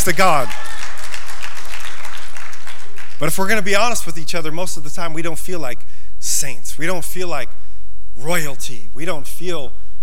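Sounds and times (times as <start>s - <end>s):
speech: 0.0s - 0.8s, 3.2s - 7.6s, 8.2s - 9.8s
people clapping: 0.0s - 3.6s.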